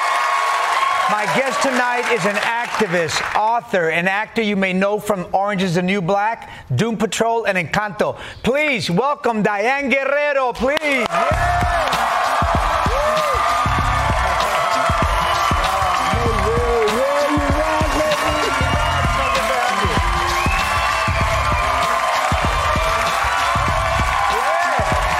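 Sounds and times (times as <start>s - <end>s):
talk show studio audience cheering, whooping and applauding: 0.0s - 3.5s, 10.8s - 25.1s
speech: 1.1s - 11.9s.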